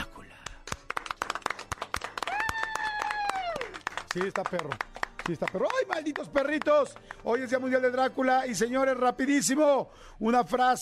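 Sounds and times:
small group clapping: 0.4 - 7.6
speech: 4.2 - 10.8.

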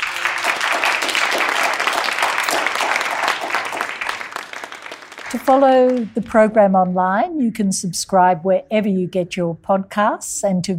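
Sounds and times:
audience applause: 0.0 - 6.2
speech: 5.3 - 10.7.

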